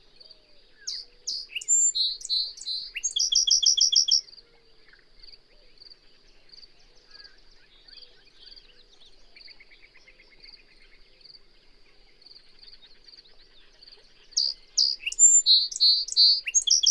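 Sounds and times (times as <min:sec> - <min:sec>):
bird song: 0:00.0 - 0:16.9.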